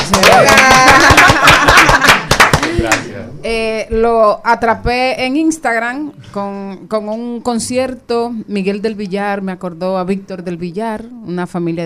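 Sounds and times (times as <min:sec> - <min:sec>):
crowd applause: 0:00.0 - 0:03.0
speech: 0:00.1 - 0:00.9, 0:03.9 - 0:11.8
voices cheering: 0:00.1 - 0:01.4
laughter: 0:00.2 - 0:03.0.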